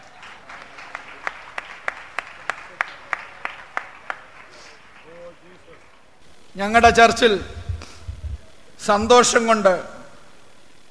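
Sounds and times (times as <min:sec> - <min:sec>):
church congregation clapping in rhythm: 0:00.0 - 0:06.1
speech: 0:06.6 - 0:07.6, 0:08.8 - 0:10.0.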